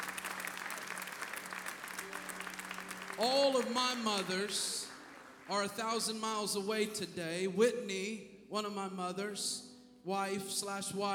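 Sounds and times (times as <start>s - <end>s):
audience clapping: 0.0s - 6.4s
speech: 3.2s - 4.8s, 5.5s - 11.1s.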